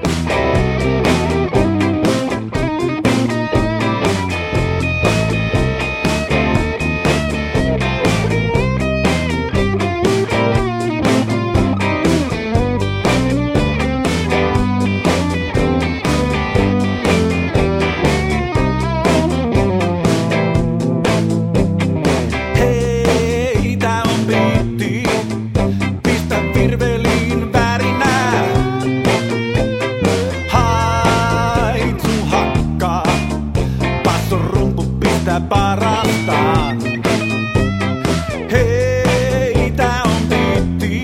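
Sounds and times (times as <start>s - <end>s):
count-in beat on drums: 0.0s - 41.0s.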